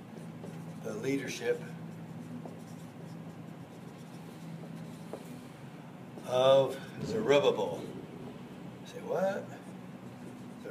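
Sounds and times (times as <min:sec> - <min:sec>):
writing on a board: 0:00.0 - 0:05.6, 0:10.2 - 0:10.6
speech: 0:00.8 - 0:01.8, 0:06.3 - 0:07.9, 0:08.9 - 0:09.6.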